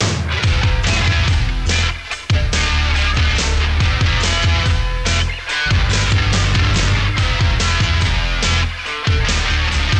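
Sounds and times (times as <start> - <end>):
rock tune: 0.0 - 9.9.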